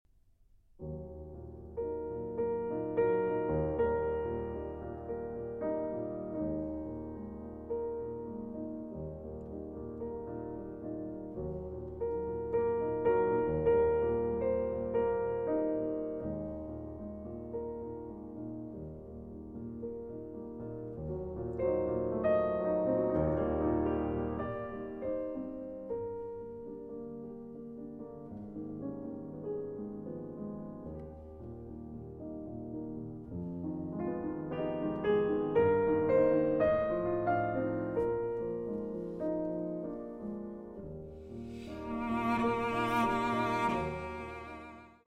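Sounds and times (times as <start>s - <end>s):
cello sonata movement in G minor, andante: 0.8s - 45.0s.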